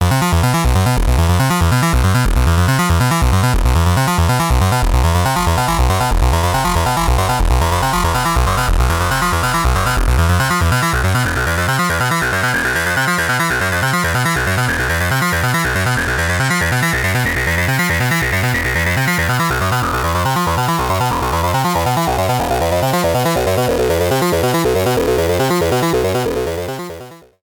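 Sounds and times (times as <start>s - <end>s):
synth sequence with audio feedback patch: 0.0s - 27.3s.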